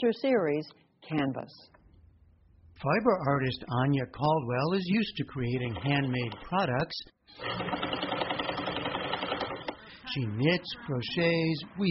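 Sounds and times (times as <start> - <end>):
speech: 0.0 - 1.8, 2.8 - 8.2, 10.1 - 11.8
sewing machine stitching fabric masks: 7.3 - 9.8.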